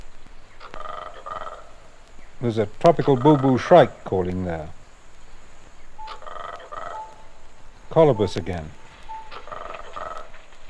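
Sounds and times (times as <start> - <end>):
speech: 2.4 - 4.8, 7.9 - 8.8
cicada high-pitched whistle: 5.9 - 10.2.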